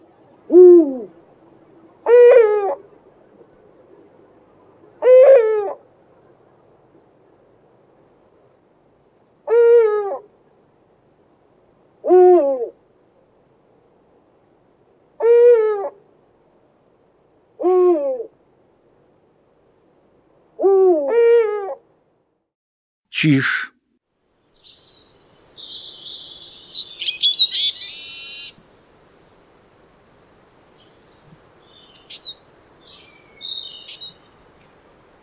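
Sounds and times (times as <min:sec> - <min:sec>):
Eurasian eagle-owl hooting: 0:00.5 - 0:01.2, 0:02.0 - 0:02.9, 0:05.0 - 0:05.8, 0:09.5 - 0:10.2, 0:12.0 - 0:12.8, 0:15.2 - 0:16.0, 0:17.6 - 0:18.4, 0:20.6 - 0:21.8, 0:26.7 - 0:28.6
speech: 0:23.2 - 0:23.7.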